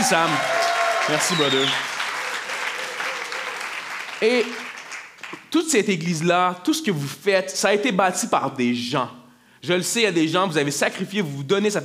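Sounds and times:
church audience applauding: 0.0s - 5.5s
speech: 0.1s - 1.9s, 4.2s - 4.6s, 5.5s - 11.8s.

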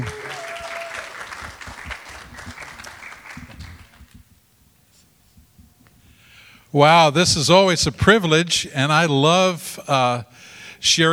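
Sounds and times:
audience applause: 0.0s - 4.2s
speech: 6.8s - 11.1s.

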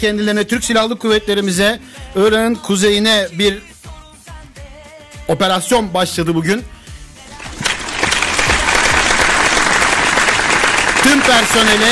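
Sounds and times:
speech: 0.0s - 3.7s, 5.3s - 6.8s, 11.0s - 11.9s
audience applause: 7.3s - 11.9s.

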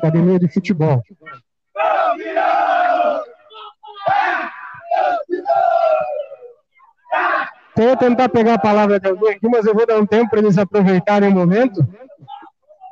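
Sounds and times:
speech: 0.0s - 1.1s, 7.8s - 12.0s
crowd in Rosário do Sul chanting champion cheer: 1.7s - 8.7s.

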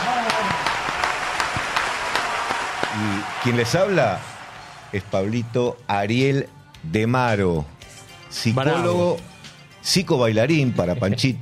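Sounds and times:
crowd applauding: 0.0s - 5.6s
speech: 3.0s - 4.3s, 4.9s - 11.4s.

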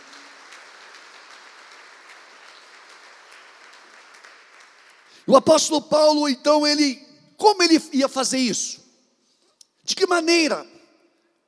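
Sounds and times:
audience applauding: 0.0s - 5.3s
speech: 5.2s - 8.8s, 9.9s - 10.7s.

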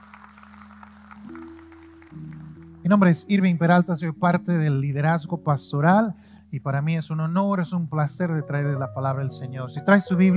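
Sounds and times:
audience applause: 0.0s - 3.0s
speech: 2.9s - 10.3s.

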